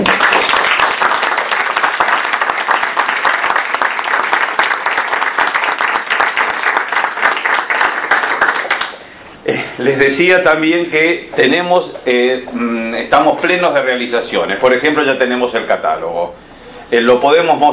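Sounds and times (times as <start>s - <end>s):
audience applause: 0.0s - 9.0s
speech: 9.9s - 17.7s.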